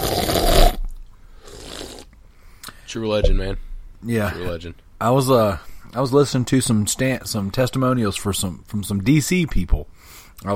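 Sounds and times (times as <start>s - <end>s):
slurping a drink: 0.0s - 2.2s
speech: 2.9s - 10.5s.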